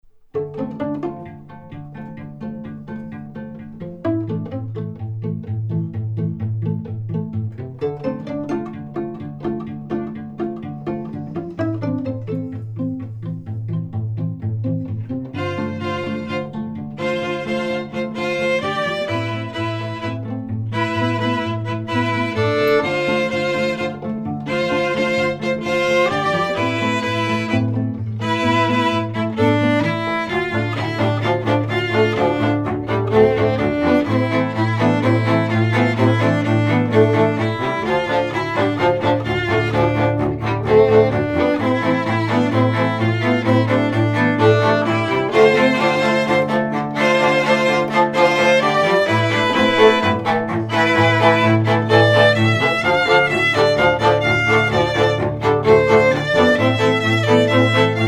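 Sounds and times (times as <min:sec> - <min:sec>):
electric strings: 0:00.0 - 0:58.0.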